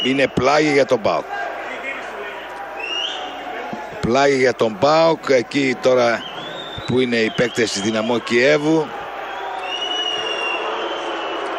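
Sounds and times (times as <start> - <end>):
whistling: 0.0 - 0.4, 2.8 - 3.4, 6.1 - 8.5, 9.2 - 11.5
speech: 0.0 - 1.4, 4.0 - 9.0
PAOK and Dynamo Kyiv supporters booing in a football stadium: 0.0 - 11.5.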